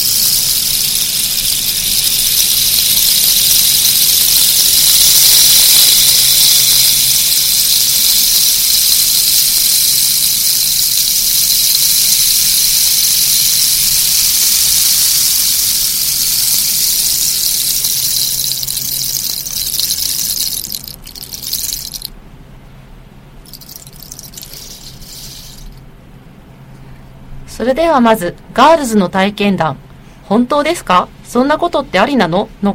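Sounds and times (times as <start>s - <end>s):
rainstick, rain-making instrument: 0.0s - 22.2s, 23.5s - 25.8s
speech: 27.7s - 32.7s.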